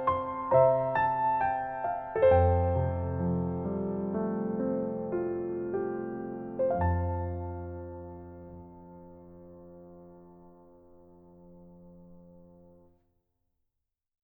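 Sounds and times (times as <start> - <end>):
piano B major chord: 0.0 - 12.8.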